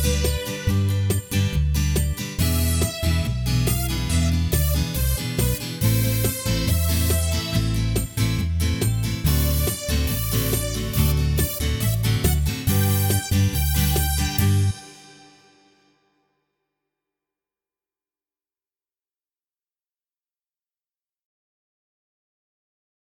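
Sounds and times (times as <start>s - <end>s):
backing track: 0.0s - 15.8s.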